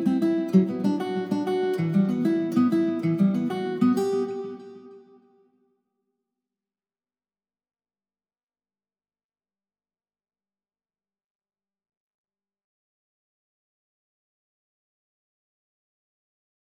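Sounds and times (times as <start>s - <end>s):
guitar in E minor at 96 BPM: 0.0s - 5.3s.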